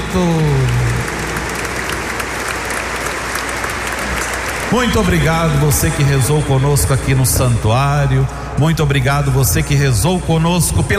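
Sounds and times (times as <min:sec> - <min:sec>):
round of applause: 0:00.0 - 0:06.6
speech: 0:00.1 - 0:00.6, 0:04.7 - 0:10.9.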